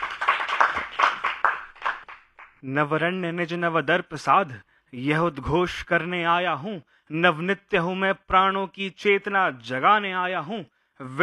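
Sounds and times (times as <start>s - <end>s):
audience clapping at a Hindi poetry recital: 0.0s - 2.6s
speech: 2.6s - 11.2s.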